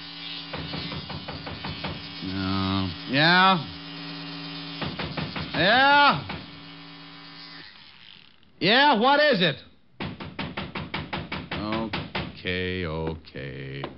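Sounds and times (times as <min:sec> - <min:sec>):
electric shaver buzzing: 0:00.0 - 0:08.5
speech: 0:03.1 - 0:03.8, 0:05.6 - 0:06.3, 0:08.6 - 0:09.7, 0:12.5 - 0:13.6.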